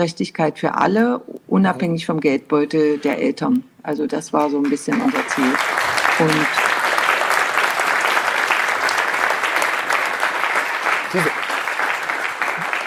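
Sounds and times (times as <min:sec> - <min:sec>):
speech: 0:00.0 - 0:06.6, 0:11.1 - 0:11.4
applause at a school event for a departing teacher: 0:04.6 - 0:12.8.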